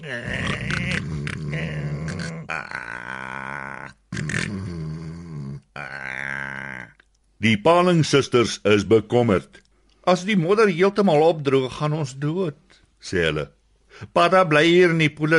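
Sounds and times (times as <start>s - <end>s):
speech: 0.0s - 0.9s, 7.4s - 15.3s
person imitating snoring: 0.0s - 7.0s.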